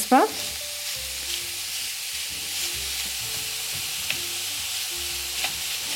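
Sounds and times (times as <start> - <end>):
minced meat frying with onions and carrots: 0.0 - 5.9.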